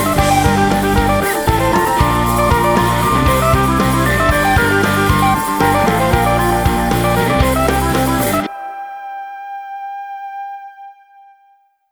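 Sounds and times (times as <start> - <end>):
rock music: 0.0 - 8.6.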